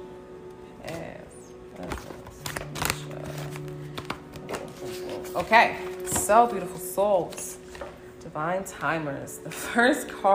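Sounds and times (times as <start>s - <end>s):
deck of cards shuffled: 1.8s - 6.3s
speech: 5.4s - 7.6s, 8.4s - 10.3s.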